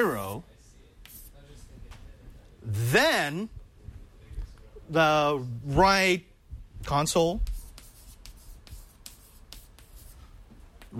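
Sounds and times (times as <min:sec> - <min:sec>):
handwriting strokes scratching on a writing surface: 0:01.0 - 0:01.4, 0:07.0 - 0:10.3
speech: 0:02.7 - 0:03.6, 0:04.9 - 0:07.5.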